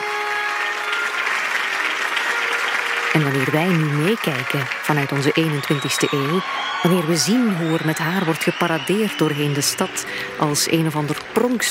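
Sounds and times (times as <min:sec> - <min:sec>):
crowd cheering and applauding: 0:00.0 - 0:11.6
speech: 0:03.2 - 0:11.6.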